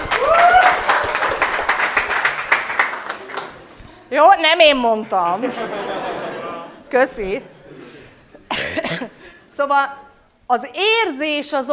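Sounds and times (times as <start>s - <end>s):
audience applause: 0.0s - 3.8s
whoop or whistle: 0.1s - 0.8s
speech: 4.4s - 7.5s, 8.9s - 11.7s
laughter: 5.0s - 9.2s.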